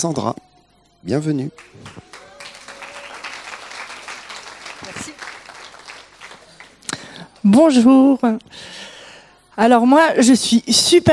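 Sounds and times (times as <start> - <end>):
speech: 0.0 - 2.2, 7.4 - 8.9, 9.6 - 11.1
audience applauding at a worship service: 1.6 - 7.6.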